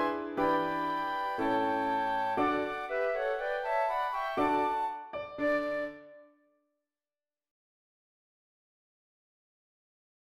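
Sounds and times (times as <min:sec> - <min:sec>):
ragtime music: 0:00.0 - 0:05.9.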